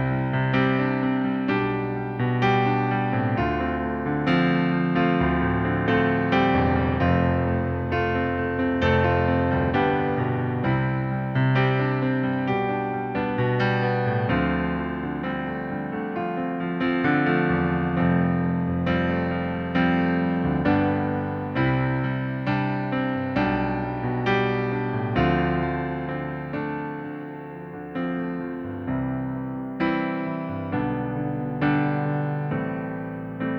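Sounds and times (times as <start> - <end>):
piano in C major: 0.0 - 33.5.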